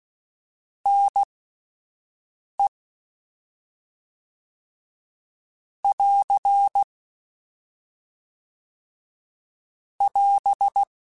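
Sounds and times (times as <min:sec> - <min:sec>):
Morse code CW code groups: 0:05.9 - 0:06.9, 0:10.1 - 0:10.9.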